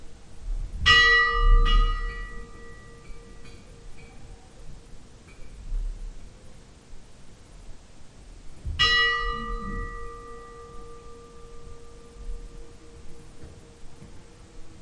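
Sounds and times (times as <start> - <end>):
Hjarðarholt church funeral bell ringing: 0.9 - 4.2, 8.8 - 14.8.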